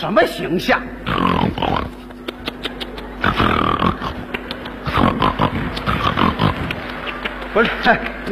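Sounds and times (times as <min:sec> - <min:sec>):
speech: 0:00.0 - 0:02.0, 0:07.6 - 0:08.3
person imitating snoring: 0:01.1 - 0:02.0, 0:03.2 - 0:04.2, 0:04.8 - 0:06.8
laughter: 0:02.0 - 0:08.3.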